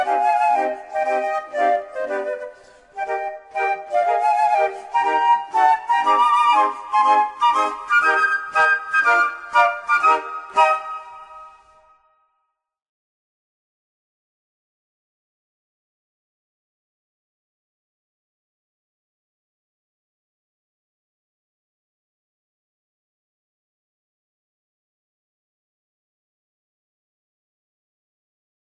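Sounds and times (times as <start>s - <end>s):
flute quintet playing a national anthem: 0.0s - 11.8s.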